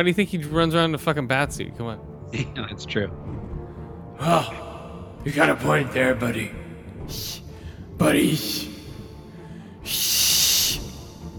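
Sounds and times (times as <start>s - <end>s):
speech: 0.0s - 3.4s, 4.2s - 7.4s, 8.0s - 8.7s, 9.8s - 10.3s
person attempting to whistle: 9.8s - 11.1s.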